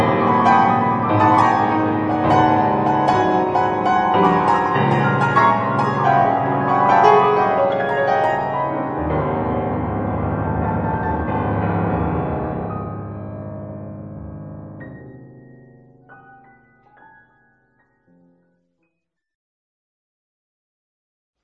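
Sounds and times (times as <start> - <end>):
two pianos playing: 0.0 - 18.4.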